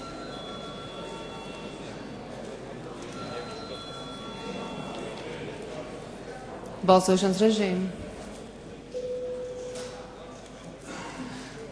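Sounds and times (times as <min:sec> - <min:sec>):
parliament voting bell ringing: 0:00.0 - 0:02.3, 0:03.1 - 0:05.2, 0:09.0 - 0:10.1
murmur of voices: 0:00.0 - 0:11.7
speech: 0:06.8 - 0:08.0.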